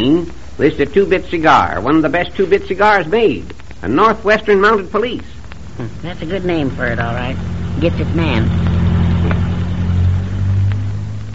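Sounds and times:
speech: 0.0 - 8.7
car driving past: 6.0 - 11.3.

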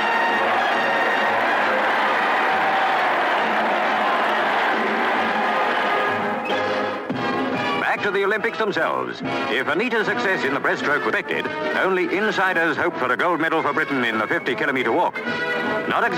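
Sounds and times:
huge crowd cheering: 0.0 - 7.1
speech: 8.0 - 16.1.

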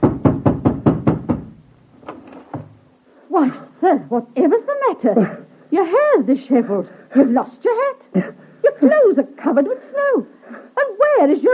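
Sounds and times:
hammering knock on a door: 0.0 - 1.6
speech: 3.4 - 11.5.

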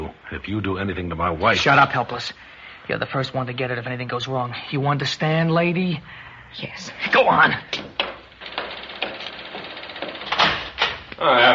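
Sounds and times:
speech: 0.3 - 8.0, 11.2 - 11.5
knocking on a door: 7.7 - 9.2.

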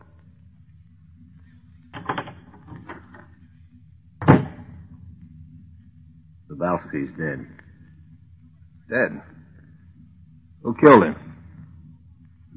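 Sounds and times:
door opening: 1.9 - 3.4, 4.2 - 4.8
speech: 6.9 - 7.6, 8.9 - 9.4, 10.7 - 11.2.

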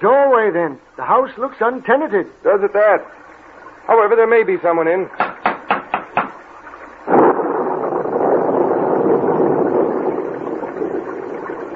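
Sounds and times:
speech: 0.0 - 3.2, 3.9 - 5.3
heavy rain in a thunderstorm: 7.0 - 11.7.

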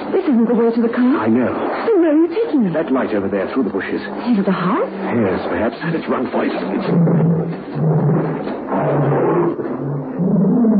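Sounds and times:
speech: 0.1 - 10.7
tiger roaring: 6.7 - 10.7.

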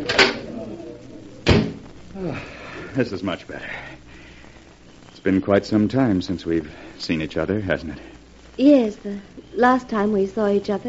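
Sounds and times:
door opening onto a terrace: 1.4 - 1.8
speech: 2.2 - 4.1, 5.2 - 10.8.

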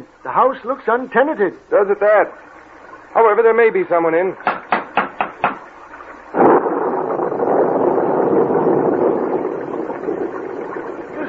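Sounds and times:
speech: 0.3 - 2.6, 3.2 - 4.5
heavy rain: 6.0 - 11.2
thunder: 6.3 - 11.2.

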